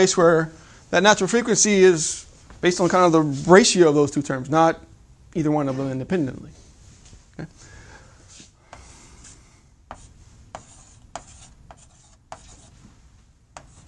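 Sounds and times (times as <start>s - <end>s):
speech: 0.0s - 6.6s, 7.4s - 7.7s
writing on a board during a lecture: 8.7s - 12.8s, 13.5s - 13.8s.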